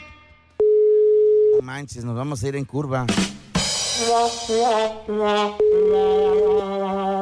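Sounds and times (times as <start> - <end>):
clear, pure, steady beep: 0.6 - 1.6
unanswered phone call tone: 0.6 - 1.6, 5.6 - 7.0
speech: 1.7 - 7.1.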